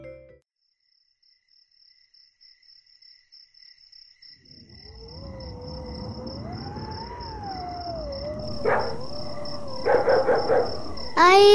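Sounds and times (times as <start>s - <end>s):
strong wind howling: 4.5s - 11.5s.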